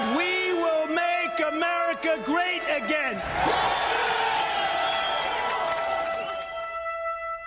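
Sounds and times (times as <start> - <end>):
massive crowd cheering at a political rally: 0.0 - 7.2
speech: 2.0 - 4.1.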